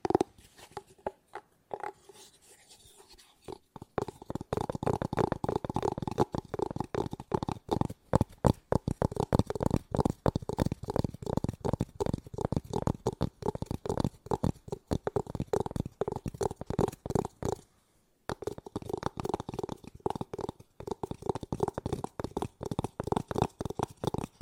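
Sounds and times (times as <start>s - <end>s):
fast tapping: 3.7s - 17.6s, 18.3s - 24.4s.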